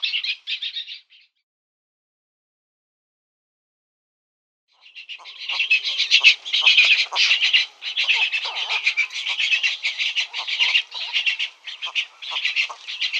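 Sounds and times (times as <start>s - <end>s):
cattle egret nestlings rasping chorus: 4.8s - 13.1s.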